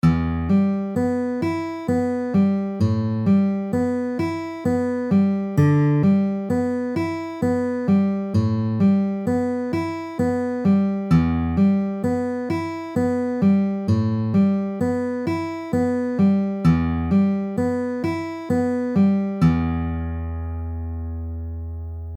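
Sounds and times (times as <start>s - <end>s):
fingerpicking on open strings: 0.0s - 22.1s.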